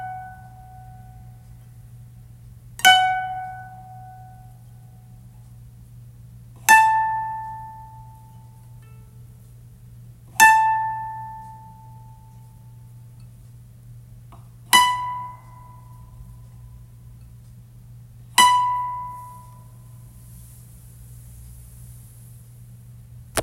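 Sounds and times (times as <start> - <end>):
koto tuning: 2.8 - 4.7, 6.7 - 9.1, 10.4 - 12.5, 14.7 - 16.2, 18.3 - 20.2.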